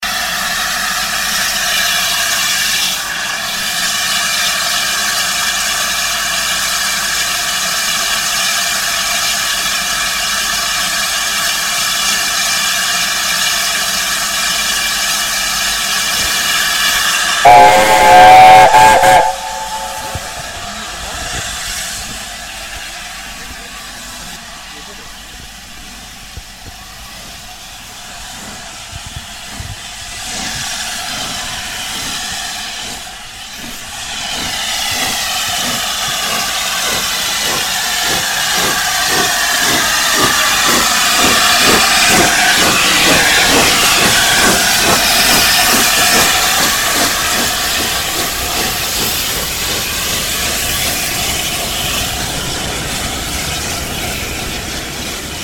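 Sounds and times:
Bittern steam train leaving York station: 0:00.0 - 0:55.4.

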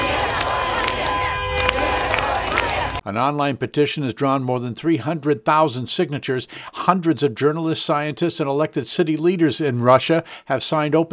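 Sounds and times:
anti-war protest crowd chanting in Moscow: 0:00.0 - 0:03.0
speech: 0:03.1 - 0:11.1.

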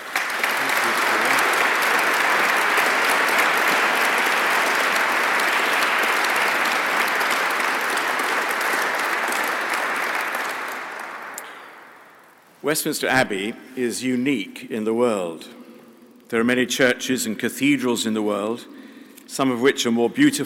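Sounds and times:
audience applause welcoming a lecturer: 0:00.0 - 0:12.4
speech: 0:12.7 - 0:15.6, 0:16.3 - 0:20.4.

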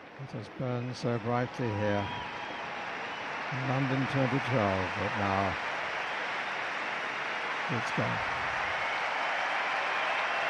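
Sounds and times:
arena crowd applause: 0:00.0 - 0:10.4
speech: 0:00.2 - 0:02.4, 0:03.5 - 0:05.7, 0:07.7 - 0:08.4.

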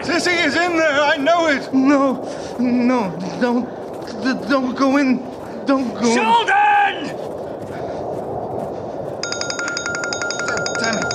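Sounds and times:
speech: 0:00.0 - 0:07.2
telephone ringing: 0:09.2 - 0:11.1.

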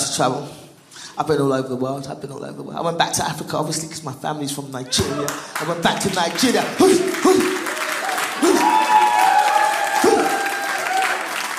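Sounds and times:
speech: 0:00.2 - 0:00.6, 0:01.2 - 0:07.6
audience clapping: 0:05.0 - 0:11.5.

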